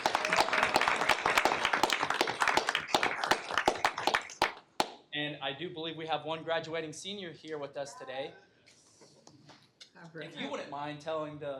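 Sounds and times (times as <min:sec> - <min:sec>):
group applause: 0:00.0 - 0:05.0
speech: 0:05.5 - 0:08.5, 0:10.0 - 0:11.5.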